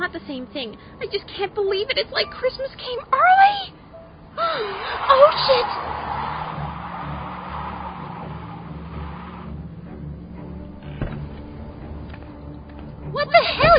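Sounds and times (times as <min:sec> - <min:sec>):
speech: 0:00.1 - 0:03.8, 0:04.4 - 0:06.0
car engine roaring, driven fast inside a parking garage: 0:04.3 - 0:13.7.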